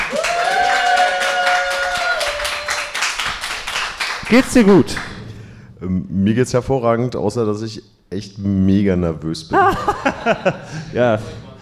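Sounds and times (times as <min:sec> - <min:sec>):
applause: 0:00.0 - 0:05.2
speech: 0:04.3 - 0:05.1, 0:05.8 - 0:11.6
laughter: 0:09.5 - 0:11.0.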